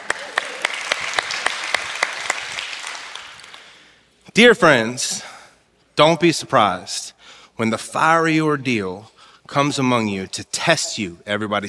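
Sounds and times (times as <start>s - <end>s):
scattered applause: 0.0s - 3.9s
crowd clapping in rhythm: 0.0s - 4.0s
speech: 4.4s - 5.2s, 6.0s - 11.6s.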